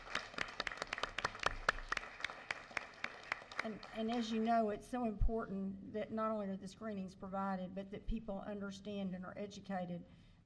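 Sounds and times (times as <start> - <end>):
round of applause of crisp hand claps: 0.0 - 4.3
speech: 3.6 - 10.2.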